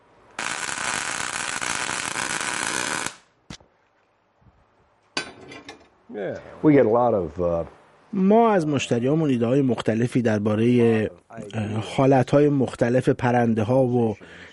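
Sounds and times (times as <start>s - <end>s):
tack welding steel: 0.3s - 3.6s
speech: 6.1s - 14.5s.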